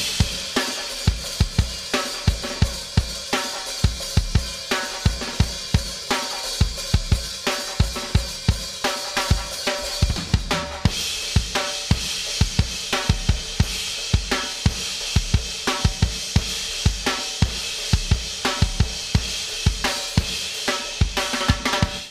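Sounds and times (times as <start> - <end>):
drums: 0.0 - 22.0.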